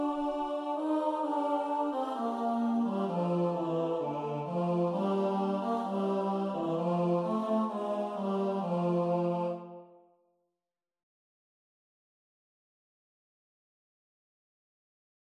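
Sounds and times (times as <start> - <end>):
tenor singing: 0.0 - 9.8.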